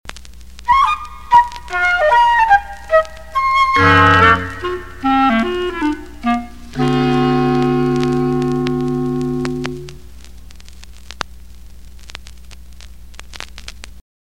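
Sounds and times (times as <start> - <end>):
short cartoon music bridge: 0.7 - 10.0.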